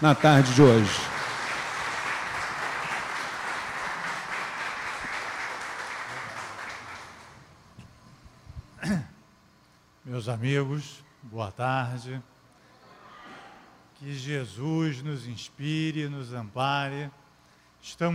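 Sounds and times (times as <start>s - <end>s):
speech: 0.0s - 1.1s, 10.2s - 12.3s, 14.0s - 17.2s, 17.8s - 18.1s
audience applause: 0.0s - 7.5s.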